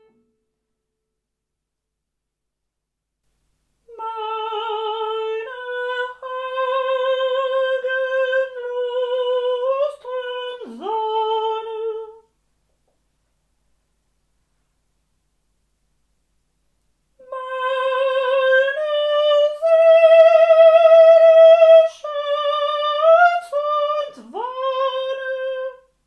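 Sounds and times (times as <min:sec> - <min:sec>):
sopranos singing: 0:03.9 - 0:12.3, 0:17.2 - 0:25.9.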